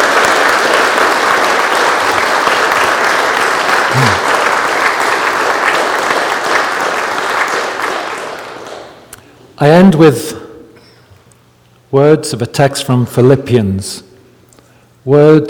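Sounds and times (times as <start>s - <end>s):
applause for three appointed canons: 0.0s - 9.1s
speech: 9.6s - 10.4s, 11.9s - 14.1s, 15.1s - 15.4s.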